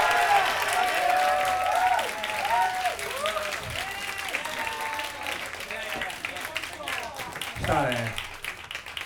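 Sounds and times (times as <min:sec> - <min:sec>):
audience applause: 0:00.0 - 0:09.0.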